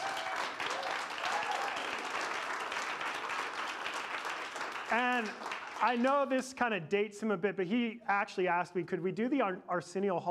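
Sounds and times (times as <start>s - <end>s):
audience clapping: 0.0s - 6.5s
speech: 4.9s - 10.3s.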